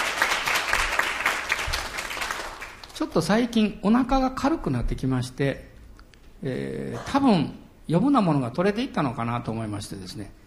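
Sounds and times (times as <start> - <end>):
audience applause: 0.0 - 3.0
speech: 3.0 - 5.7, 6.4 - 10.4.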